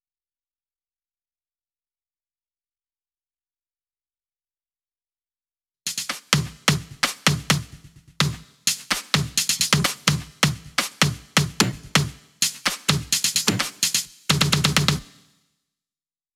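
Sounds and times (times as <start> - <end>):
percussion loop: 5.9 - 15.3.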